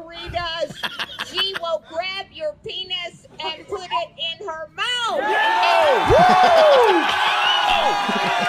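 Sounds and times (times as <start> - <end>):
laughter: 0.6 - 1.8, 6.1 - 8.4
crowd cheering: 5.1 - 8.4.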